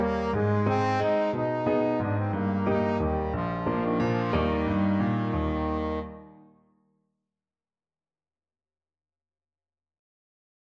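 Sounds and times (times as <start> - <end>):
trombone: 0.0 - 6.3.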